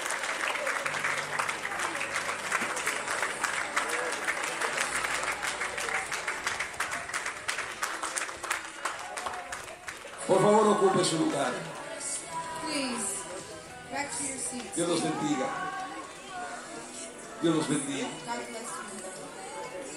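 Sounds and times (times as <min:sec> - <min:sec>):
audience applauding: 0:00.0 - 0:12.2
scattered cheers and voices: 0:00.0 - 0:19.9
speech: 0:10.3 - 0:11.7, 0:14.2 - 0:15.7, 0:17.4 - 0:18.8.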